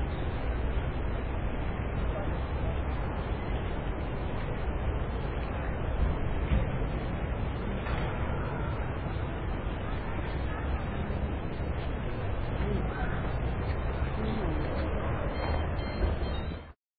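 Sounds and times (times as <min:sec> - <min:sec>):
park ambience in Munich: 0:00.0 - 0:16.8.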